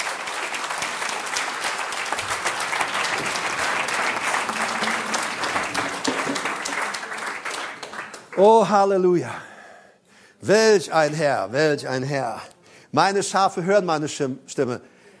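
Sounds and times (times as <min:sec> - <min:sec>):
audience applauding: 0:00.0 - 0:08.8
speech: 0:08.4 - 0:09.4, 0:10.4 - 0:14.9.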